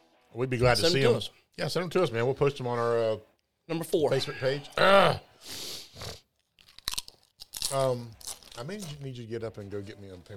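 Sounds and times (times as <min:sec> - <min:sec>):
speech: 0:00.3 - 0:06.2, 0:07.7 - 0:10.3
ghost pepper chip crunching: 0:06.3 - 0:09.2.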